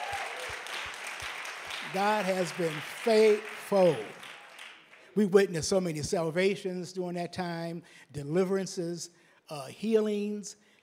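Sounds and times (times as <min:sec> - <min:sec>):
round of applause: 0:00.0 - 0:05.3
speech: 0:01.9 - 0:04.2, 0:05.2 - 0:10.6.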